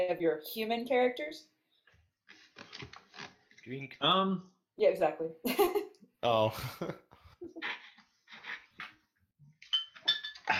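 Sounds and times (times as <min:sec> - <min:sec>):
speech: 0:00.0 - 0:01.5, 0:03.7 - 0:07.8
glasses clinking: 0:09.6 - 0:10.5.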